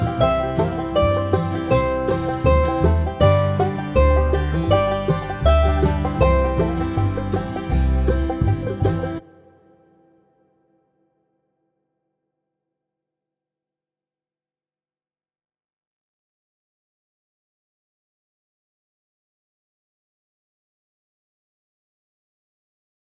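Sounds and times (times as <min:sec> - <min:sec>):
mandolin: 0:00.0 - 0:10.3.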